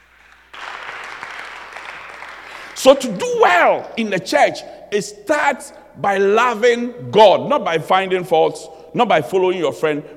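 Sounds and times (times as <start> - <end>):
audience clapping: 0.0 - 3.9
speech: 2.8 - 10.1.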